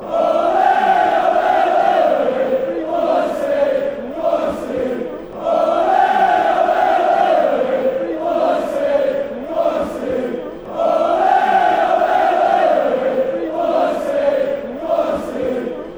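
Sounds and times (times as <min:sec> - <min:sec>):
crowd chanting: 0:00.0 - 0:15.9.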